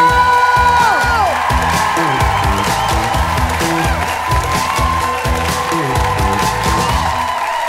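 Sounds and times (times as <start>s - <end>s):
rhythmic bass-heavy music track: 0.0s - 7.4s
audience clapping and cheering: 0.0s - 7.6s
scattered whoops: 0.0s - 7.6s.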